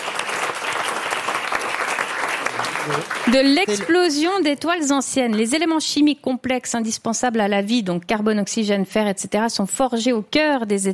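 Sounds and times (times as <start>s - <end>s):
audience applause: 0.0s - 4.2s
speech: 2.6s - 10.9s.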